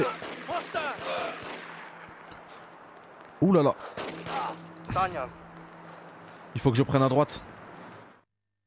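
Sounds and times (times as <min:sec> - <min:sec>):
gunfire during a video game mission: 0:00.0 - 0:01.8
speech: 0:03.4 - 0:04.1, 0:05.0 - 0:05.4, 0:06.5 - 0:07.5.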